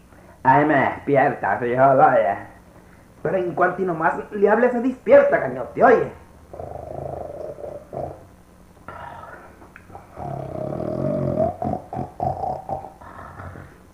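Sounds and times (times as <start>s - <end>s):
speech: 0.4s - 2.5s, 3.2s - 6.8s
person snoring: 6.5s - 8.3s, 8.9s - 13.8s.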